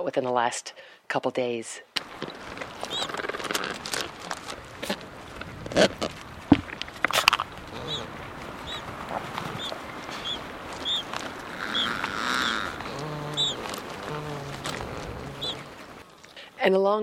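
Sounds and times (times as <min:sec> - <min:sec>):
speech: 0:00.0 - 0:02.4, 0:05.8 - 0:06.0, 0:16.7 - 0:17.0
Adélie penguin chick thin high peeps: 0:02.1 - 0:03.5, 0:07.1 - 0:16.0
Adélie penguin adults giving harsh braying calls: 0:02.1 - 0:06.2, 0:07.5 - 0:16.0.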